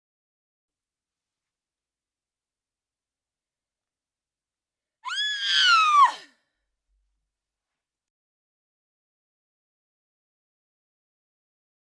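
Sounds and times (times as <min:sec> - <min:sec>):
person screaming: 0:05.1 - 0:06.3.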